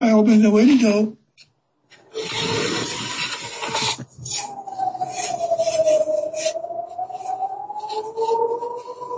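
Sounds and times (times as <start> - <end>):
speech: 0.1 - 1.5
air raid warning sirens: 2.0 - 9.1.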